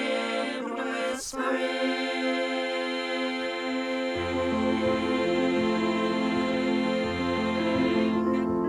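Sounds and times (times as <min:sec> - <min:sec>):
balanced voices: 0:00.0 - 0:08.5.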